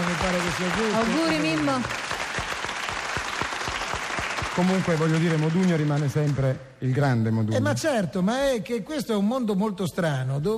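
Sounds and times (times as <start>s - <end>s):
audience applause: 0.0s - 6.6s
speech: 0.3s - 2.1s, 4.6s - 10.5s.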